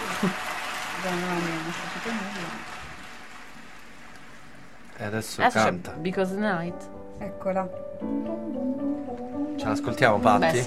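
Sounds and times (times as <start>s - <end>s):
audience applause: 0.0s - 4.5s
speech: 0.2s - 2.8s, 5.0s - 9.0s, 9.6s - 10.6s.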